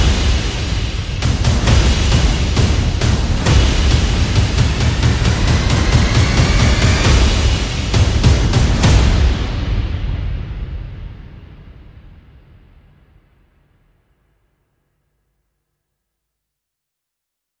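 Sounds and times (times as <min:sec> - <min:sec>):
percussion and effects: 0:00.0 - 0:13.1.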